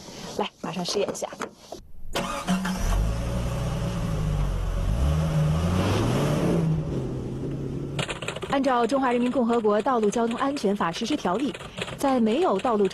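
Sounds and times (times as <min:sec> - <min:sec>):
speech: 0:00.4 - 0:01.7, 0:08.6 - 0:12.9
car accelerating forward then braking hard: 0:02.2 - 0:08.3.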